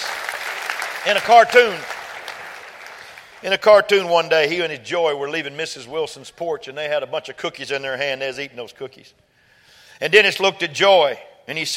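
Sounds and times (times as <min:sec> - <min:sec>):
church congregation clapping during a sermon: 0:00.0 - 0:04.6
speech: 0:01.0 - 0:01.9, 0:03.4 - 0:09.3, 0:10.0 - 0:11.7.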